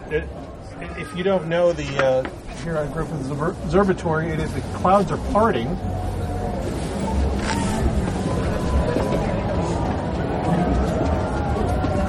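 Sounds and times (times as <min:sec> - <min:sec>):
speech: 0:00.1 - 0:06.2
crowd cheering outdoors: 0:05.8 - 0:12.0.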